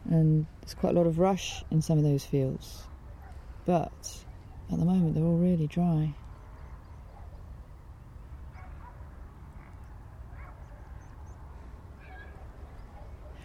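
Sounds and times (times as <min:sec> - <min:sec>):
speech: 0:00.1 - 0:02.9, 0:03.7 - 0:06.2
dog barking constantly: 0:07.1 - 0:07.4, 0:08.5 - 0:09.0, 0:10.3 - 0:11.0, 0:12.0 - 0:13.4.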